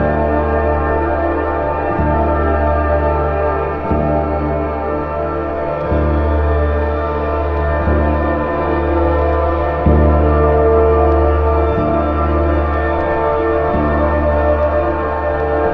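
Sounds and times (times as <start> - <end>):
sad string music: 0.0 - 15.7.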